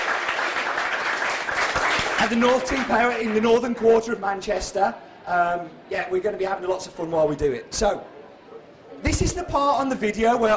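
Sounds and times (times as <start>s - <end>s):
audience applause: 0.0s - 3.7s
speech: 2.2s - 8.1s, 9.0s - 10.5s.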